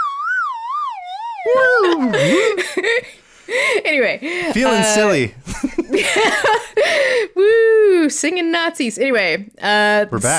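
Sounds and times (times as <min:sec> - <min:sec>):
slide whistle sound effect: 0:00.0 - 0:02.2
speech: 0:01.4 - 0:07.3, 0:08.0 - 0:10.3
laughter: 0:01.5 - 0:07.2.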